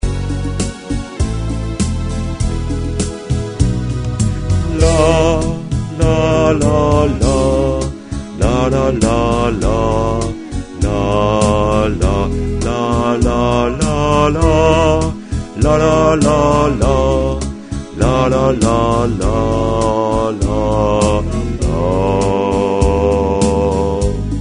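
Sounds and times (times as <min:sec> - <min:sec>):
bass interlude: 0:00.0 - 0:24.3.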